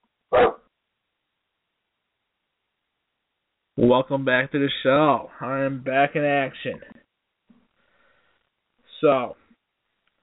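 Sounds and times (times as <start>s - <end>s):
dog barking: 0.3s - 0.7s
speech: 3.8s - 7.0s, 9.0s - 9.4s.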